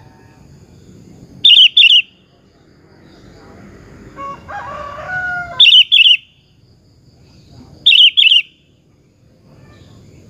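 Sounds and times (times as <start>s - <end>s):
sooty-headed bulbul singing bubbling phrases: 1.3s - 2.4s, 5.5s - 6.6s, 7.8s - 8.8s.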